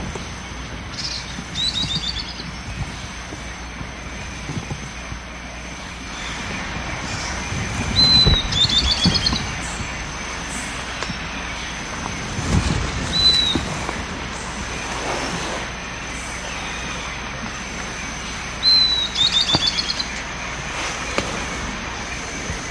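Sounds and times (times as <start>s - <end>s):
trilled bird notes: 0.0s - 15.0s, 15.6s - 22.7s
low background rumble: 0.0s - 22.7s
bird whistling: 0.9s - 2.9s, 7.1s - 22.7s.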